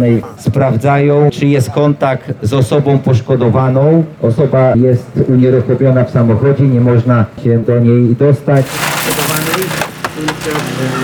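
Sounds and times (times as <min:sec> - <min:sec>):
speech: 0:00.0 - 0:08.9
loud continuous wash of noise: 0:00.0 - 0:11.0
firefighters smashing the rear window of a car: 0:08.6 - 0:11.0.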